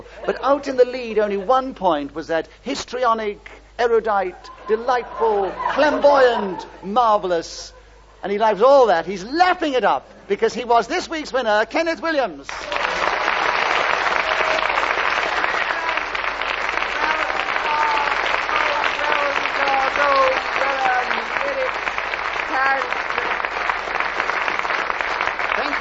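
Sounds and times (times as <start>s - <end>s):
speech: 0.3s - 12.8s
laughter: 4.2s - 6.9s
studio audience applause: 12.5s - 25.7s.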